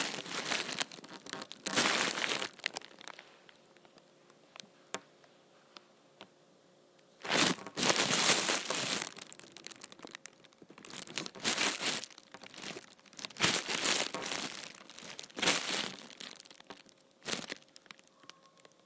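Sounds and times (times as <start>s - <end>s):
empty trash bag crumpled and crinkled: 0.0s - 3.2s, 7.2s - 18.1s.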